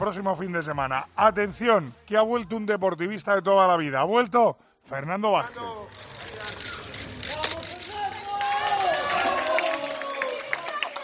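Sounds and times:
speech: 0.0 - 6.1
crowd shouting and cheering: 6.6 - 11.0.

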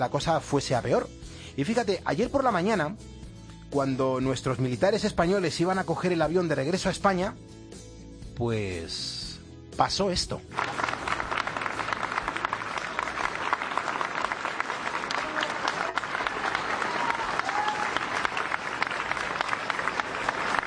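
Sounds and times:
speech: 0.0 - 7.6, 8.4 - 9.2, 9.8 - 10.7
applause from airport passers-by: 10.5 - 20.6.

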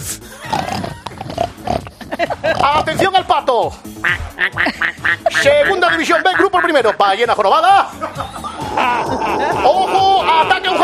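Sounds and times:
pig grunting: 0.4 - 3.1, 8.6 - 10.8
laughter: 1.9 - 2.9, 4.4 - 7.0, 7.8 - 10.8
speech: 2.6 - 4.7, 5.4 - 8.2.

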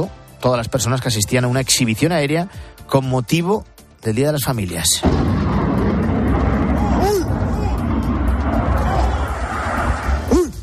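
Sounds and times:
speech: 0.0 - 5.4
F-18 fighter jet crashing near Zaragoza air base: 5.0 - 10.3.

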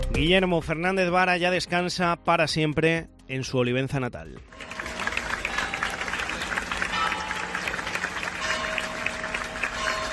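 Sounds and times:
speech: 0.2 - 4.7
prolonged ovation at a funeral: 4.5 - 10.1.

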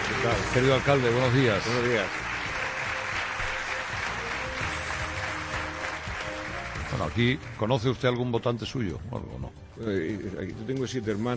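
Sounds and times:
audience applause: 0.0 - 7.6
speech: 0.2 - 2.2, 7.0 - 11.3.

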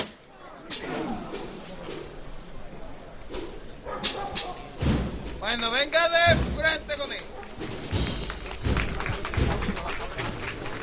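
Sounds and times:
crowd noise: 0.0 - 10.8
indistinct voices: 0.2 - 10.8
procession float lifted by bearers with deep dull thuds: 4.2 - 9.8
speech: 5.5 - 6.4
scattered clapping: 7.4 - 10.8.

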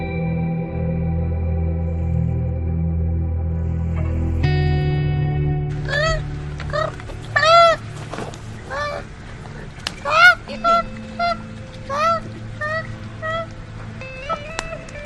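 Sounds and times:
low steady rumble: 0.0 - 15.0
koala crying in pain: 5.8 - 15.0.

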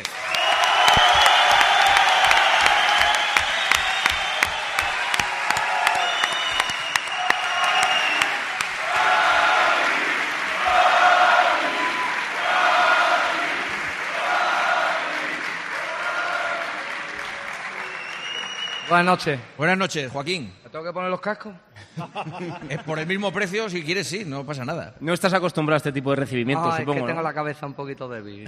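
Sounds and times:
crowd noise and shouts: 0.0 - 16.9
cheering and whoops: 0.0 - 18.8
audience applause: 0.0 - 19.4
speech: 19.0 - 28.4
laughter: 21.8 - 23.3.

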